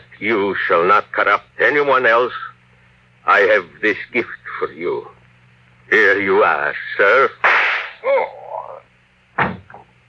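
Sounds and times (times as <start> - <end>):
speech: 0.2 - 2.5, 3.2 - 5.2, 5.9 - 7.4, 8.0 - 8.4
gunshot in a radio drama: 7.4 - 8.0.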